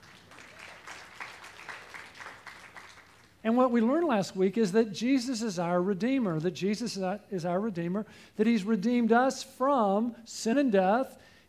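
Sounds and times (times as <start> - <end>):
audience applause: 0.0 - 3.4
speech: 3.4 - 11.3.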